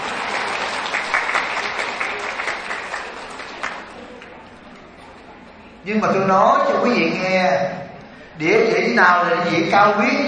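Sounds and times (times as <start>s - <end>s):
audience applause at a Vietnamese-language talk: 0.0s - 4.4s
speech: 5.8s - 7.8s, 8.4s - 10.2s.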